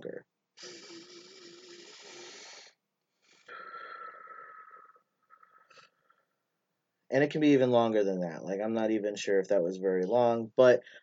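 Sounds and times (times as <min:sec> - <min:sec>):
slow breathing from a counted relaxation exercise: 0:00.6 - 0:06.4
speech: 0:07.1 - 0:11.0.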